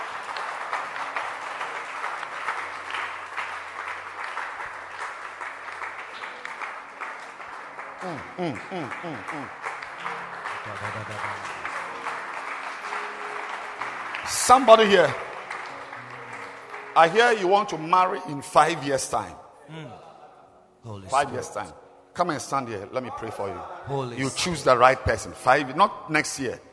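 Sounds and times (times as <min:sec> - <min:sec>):
crowd clapping hands: 0:00.0 - 0:19.3
rising wavering vocal sounds: 0:08.0 - 0:09.6
speech: 0:08.0 - 0:09.6, 0:10.6 - 0:11.6, 0:14.3 - 0:15.2, 0:17.0 - 0:20.0, 0:20.8 - 0:26.7.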